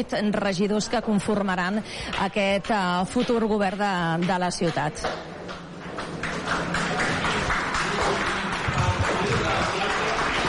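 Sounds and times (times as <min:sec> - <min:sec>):
speech: 0:00.0 - 0:05.3
assembly attendees applauding in the council chamber: 0:06.0 - 0:10.4.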